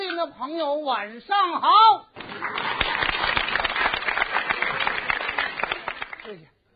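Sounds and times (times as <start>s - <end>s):
speech: 0.2s - 2.8s, 6.3s - 6.6s
enthusiastic audience applause: 2.2s - 6.4s.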